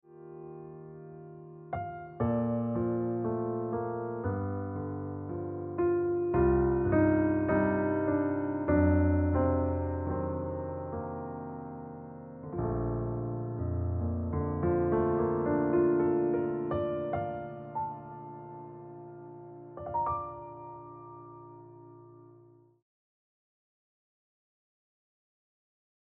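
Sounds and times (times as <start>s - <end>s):
piano music: 0.1s - 22.8s.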